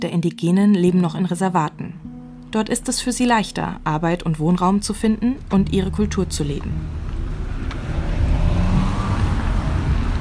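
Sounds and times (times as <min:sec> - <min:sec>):
speech: 0:00.0 - 0:07.0
car driving out of a city toward a reservation: 0:02.0 - 0:10.1.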